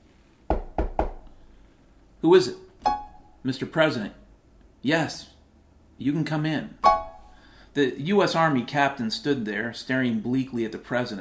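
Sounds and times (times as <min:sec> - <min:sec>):
firm low knocking on a door: 0:00.5 - 0:01.2
speech: 0:02.2 - 0:04.2, 0:04.8 - 0:05.3, 0:06.0 - 0:06.9, 0:07.8 - 0:11.1.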